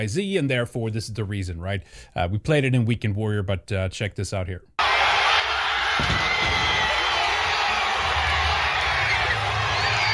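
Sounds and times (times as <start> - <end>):
speech: 0.0 - 4.7
crowd cheering: 4.8 - 10.1.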